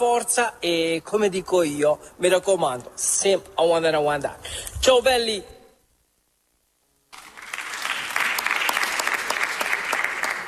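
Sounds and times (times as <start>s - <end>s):
speech: 0.0s - 5.6s
applause: 7.1s - 10.4s.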